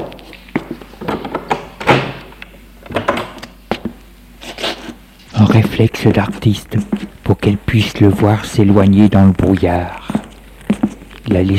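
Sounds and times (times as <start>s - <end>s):
door opening with wooden thunks: 1.2s - 2.2s
speech: 5.4s - 10.0s, 11.3s - 11.5s.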